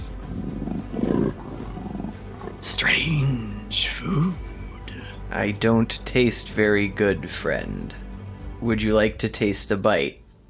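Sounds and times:
large beast growling: 0.0 - 3.5
speech: 2.6 - 4.4, 5.3 - 8.0, 8.6 - 10.2.

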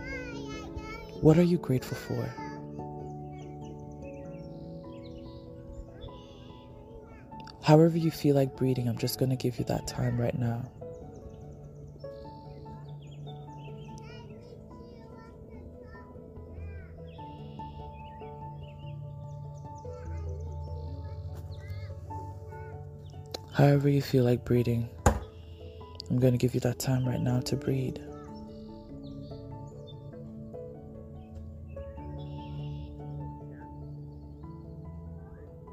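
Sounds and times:
birds chirping: 0.0 - 35.7
speech: 1.2 - 2.4, 7.7 - 10.8, 23.6 - 25.0, 26.1 - 28.1.

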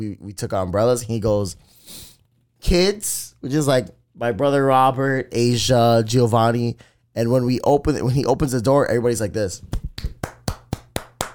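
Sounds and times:
speech: 0.0 - 10.2
hands clapping: 9.7 - 11.3.

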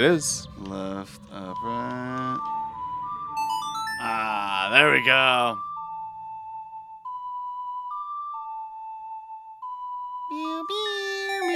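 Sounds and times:
speech: 0.0 - 2.6, 4.0 - 5.7
video game bells ringing: 0.0 - 6.2, 10.3 - 11.5.

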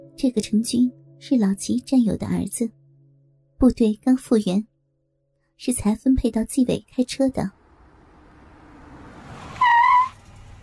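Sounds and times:
speech: 0.2 - 2.8, 3.6 - 4.7, 5.6 - 7.6
Audi car engine rumble: 7.5 - 10.6
Audi car tyre squeal: 9.5 - 10.3.

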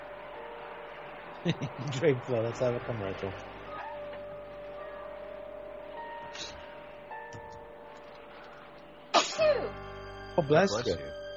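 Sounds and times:
steady low hum: 0.0 - 11.3
speech: 1.4 - 3.6, 10.4 - 11.1
person sneezing: 9.2 - 9.7.

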